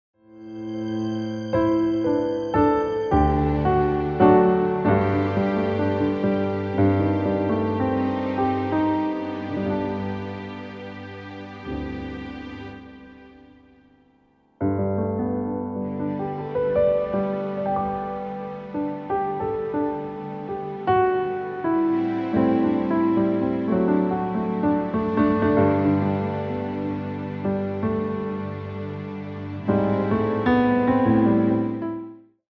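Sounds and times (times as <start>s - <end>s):
instrumental music: 0.2s - 32.3s.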